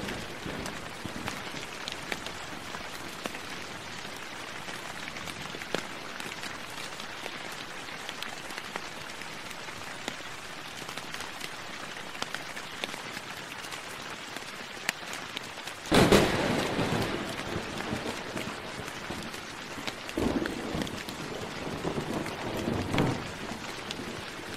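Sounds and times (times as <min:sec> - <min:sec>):
thunder rumbling: 0:00.0 - 0:02.8, 0:15.9 - 0:24.5
steady rain pattering: 0:00.0 - 0:24.5.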